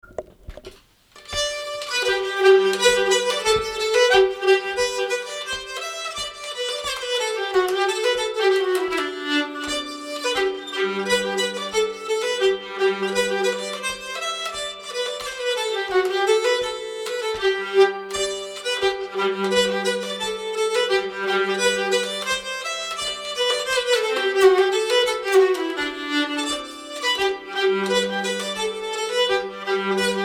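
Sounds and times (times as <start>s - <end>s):
polska folk tune in G major: 0.0s - 30.2s.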